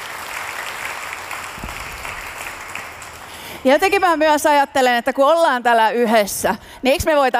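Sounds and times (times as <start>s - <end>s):
audience applause: 0.0s - 3.6s
speech: 3.6s - 7.3s.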